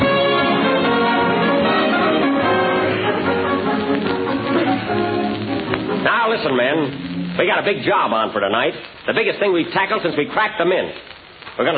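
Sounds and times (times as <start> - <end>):
short orchestral music cue: 0.0 - 6.1
speech: 6.5 - 11.7.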